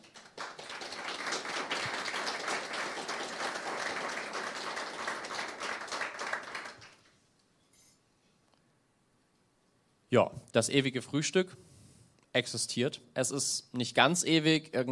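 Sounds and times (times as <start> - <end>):
crowd applauding: 0.0 - 7.2
speech: 10.1 - 11.7, 12.4 - 14.9.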